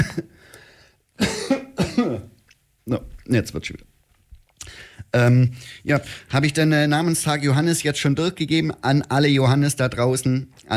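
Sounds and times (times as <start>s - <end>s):
harsh coughing from a piece of pretzel stuck in the throat: 1.2s - 2.4s
speech: 2.0s - 2.3s, 2.9s - 3.9s, 4.7s - 10.7s.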